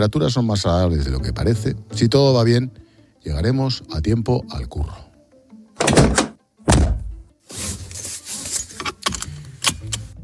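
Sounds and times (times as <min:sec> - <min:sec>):
speech: 0:00.0 - 0:05.0
car door closing: 0:05.8 - 0:07.2
rustling: 0:07.4 - 0:09.0.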